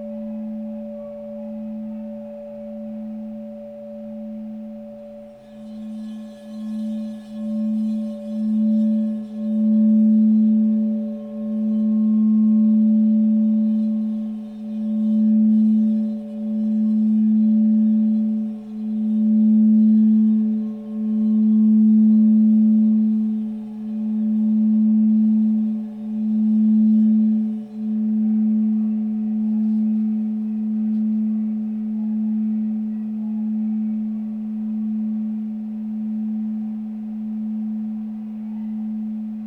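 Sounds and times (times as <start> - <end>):
9 inch 432Hz low A crystal bowl ringing: 0.0 - 39.4.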